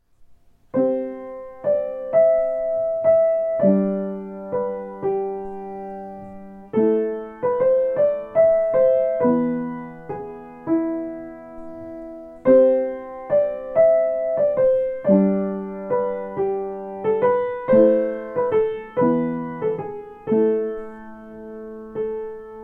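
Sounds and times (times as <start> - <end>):
solo piano variations: 0.0 - 22.6.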